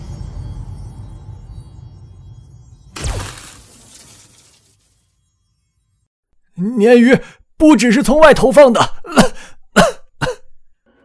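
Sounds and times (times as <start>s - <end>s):
speech: 6.6s - 10.0s
man coughing: 8.8s - 10.6s.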